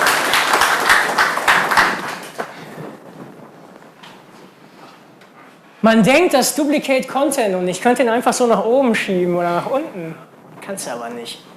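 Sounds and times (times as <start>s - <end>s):
audience applause: 0.0s - 3.2s
speech: 5.8s - 11.5s.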